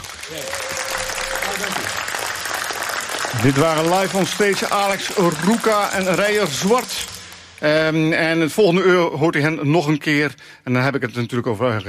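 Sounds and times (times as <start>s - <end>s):
applause: 0.0s - 7.5s
speech: 3.4s - 11.8s.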